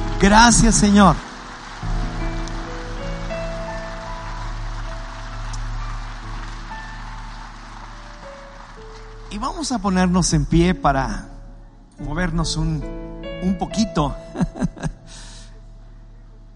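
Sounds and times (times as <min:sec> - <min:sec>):
audience clapping: 0:00.0 - 0:10.5
speech: 0:00.2 - 0:01.3, 0:09.4 - 0:11.3, 0:12.0 - 0:14.9
laughter: 0:14.2 - 0:15.4.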